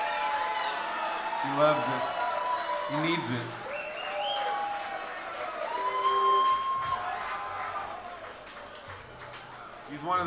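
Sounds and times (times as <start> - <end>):
audience applause for the drummer: 0.0 - 10.2
speech: 1.4 - 2.2, 2.9 - 3.6, 9.9 - 10.2
high whistle-like tones: 5.8 - 7.0.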